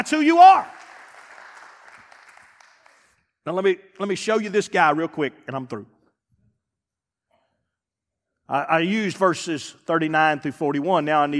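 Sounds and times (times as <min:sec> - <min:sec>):
speech: 0:00.0 - 0:00.8, 0:03.4 - 0:05.9, 0:08.5 - 0:11.3
audience hand clap: 0:00.0 - 0:03.2.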